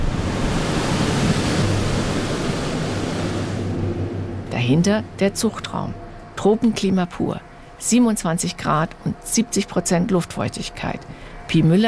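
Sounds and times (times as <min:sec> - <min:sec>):
air shower blowing air stream: 0:00.0 - 0:04.5
speech: 0:04.6 - 0:11.8.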